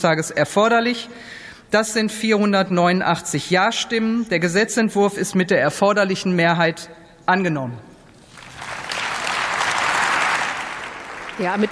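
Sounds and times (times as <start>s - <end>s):
speech: 0.0s - 7.9s, 11.4s - 11.7s
clapping in parliament after vote: 8.2s - 11.7s.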